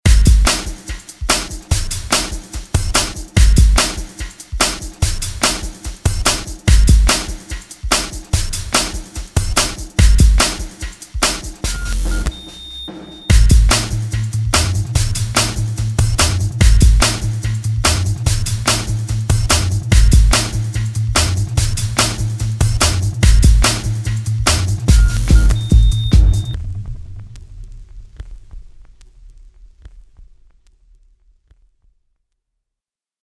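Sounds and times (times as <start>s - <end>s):
simple beat: 0.0s - 26.6s.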